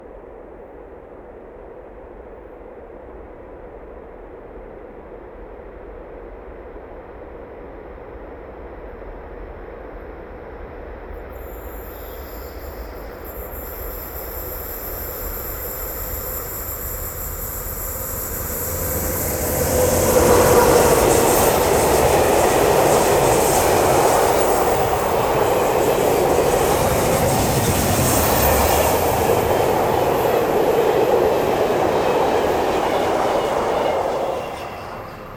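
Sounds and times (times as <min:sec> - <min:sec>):
express train passing with medium squeaking and long tails: 0:10.5 - 0:35.3.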